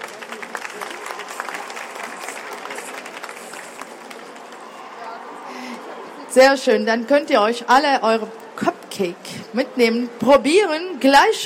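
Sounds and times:
audience applause: 0:00.0 - 0:06.3
speech: 0:06.3 - 0:11.4.

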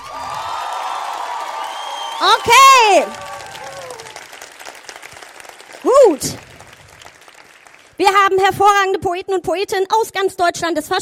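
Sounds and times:
audience cheering: 0:00.0 - 0:07.9
speech: 0:02.2 - 0:03.2, 0:06.0 - 0:06.4, 0:08.0 - 0:11.0.

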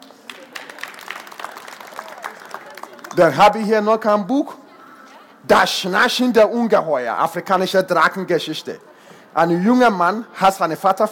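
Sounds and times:
audience applause: 0:00.0 - 0:03.2
speech: 0:03.2 - 0:04.6, 0:05.4 - 0:11.1.

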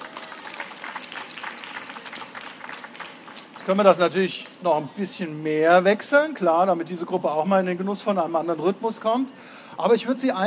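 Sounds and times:
audience applause for coaches: 0:00.0 - 0:04.1
speech: 0:03.7 - 0:10.4.

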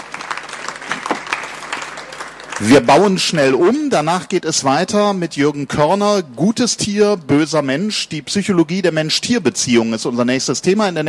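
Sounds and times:
audience applause after a panel discussion at a live talk event: 0:00.0 - 0:03.7
speech: 0:02.6 - 0:11.0.

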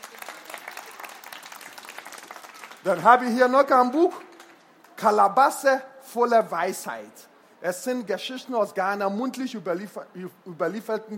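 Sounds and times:
audience applause at an author's book presentation: 0:00.0 - 0:03.3
speech: 0:02.8 - 0:04.3, 0:05.0 - 0:11.1.

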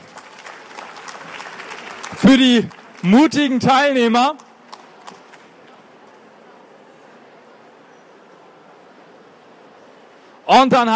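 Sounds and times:
applause: 0:00.0 - 0:05.6
speech: 0:02.1 - 0:04.4, 0:10.5 - 0:10.9.

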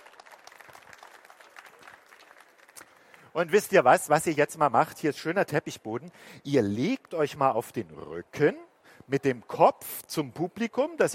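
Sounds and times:
audience applause: 0:00.0 - 0:03.4
speech: 0:03.4 - 0:11.1.

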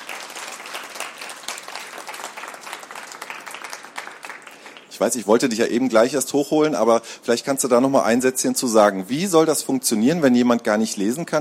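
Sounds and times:
audience applause: 0:00.0 - 0:04.9
speech: 0:05.0 - 0:11.4.

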